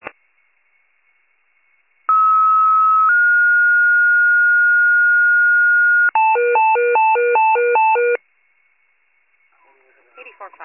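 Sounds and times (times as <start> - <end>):
fire pager alert: 2.1 - 4.4, 5.5 - 8.2.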